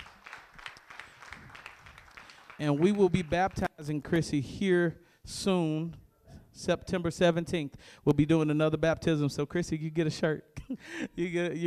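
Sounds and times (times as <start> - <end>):
audience clapping together: 0.0 - 3.7
speech: 2.6 - 6.0, 6.6 - 11.6.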